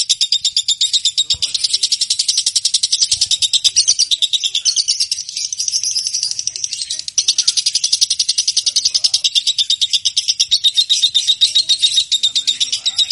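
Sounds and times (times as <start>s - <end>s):
champion lovebird chirping: 0.0s - 13.1s.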